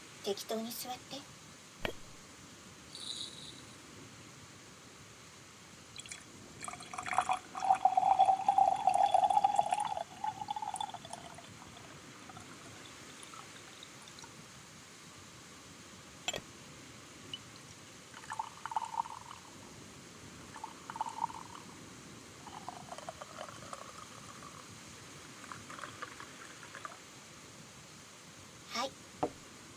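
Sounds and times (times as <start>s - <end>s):
speech: 0.2s - 2.0s
tea pouring into a cup: 6.0s - 14.4s, 17.3s - 19.5s, 20.4s - 21.7s, 22.4s - 27.0s.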